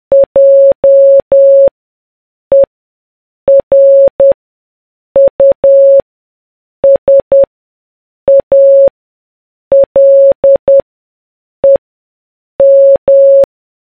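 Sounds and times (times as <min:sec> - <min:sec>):
morse code beeps: 0:00.1 - 0:01.7, 0:03.5 - 0:04.4, 0:05.2 - 0:06.0, 0:06.8 - 0:07.5, 0:08.3 - 0:08.9, 0:09.7 - 0:10.8, 0:12.6 - 0:13.5.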